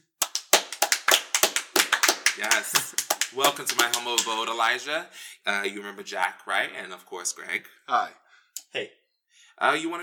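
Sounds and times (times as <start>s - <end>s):
hand clapping: 0.0s - 4.6s
speech: 2.4s - 9.0s, 9.6s - 10.0s.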